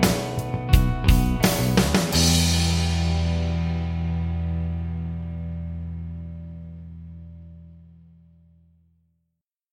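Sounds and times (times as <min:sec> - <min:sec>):
guitar tapping backing track: 0:00.0 - 0:06.7.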